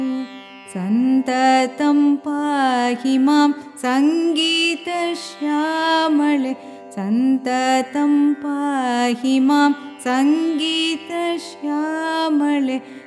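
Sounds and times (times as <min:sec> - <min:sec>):
carnatic music song in rupakam: 0:00.0 - 0:13.0.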